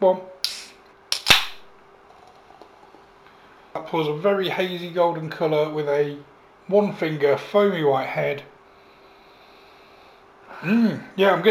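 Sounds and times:
speech: 0.0s - 0.3s, 3.9s - 8.5s, 10.6s - 11.4s
beer can opening: 0.4s - 3.0s.

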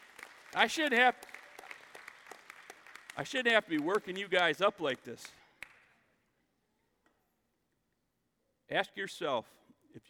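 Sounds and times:
audience clapping: 0.0s - 6.0s
speech: 0.5s - 1.3s, 3.2s - 5.4s, 8.7s - 10.0s.

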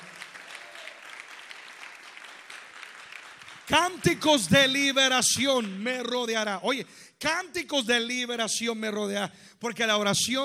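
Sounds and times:
audience clapping: 0.0s - 6.3s
speech: 3.7s - 10.4s.

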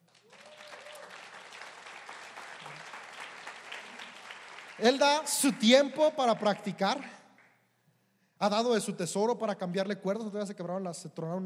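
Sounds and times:
audience applause: 0.0s - 7.2s
speech: 4.8s - 7.2s, 8.4s - 11.4s.

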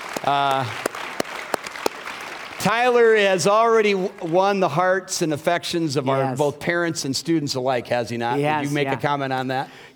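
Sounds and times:
audience clapping: 0.0s - 5.2s
speech: 0.2s - 0.9s, 2.6s - 9.9s.

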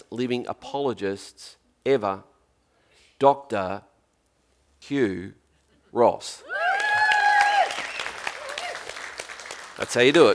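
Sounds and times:
speech: 0.1s - 2.3s, 3.2s - 3.9s, 4.8s - 6.5s, 9.8s - 10.3s
audience applause: 6.7s - 10.3s.

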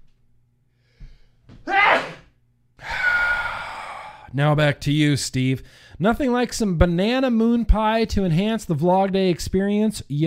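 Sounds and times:
person sneezing: 1.7s - 3.1s
speech: 4.3s - 10.2s.

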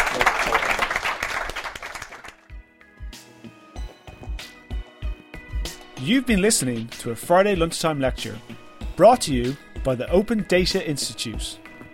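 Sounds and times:
audience applause for the panel: 0.0s - 2.4s
speech: 6.0s - 11.6s.

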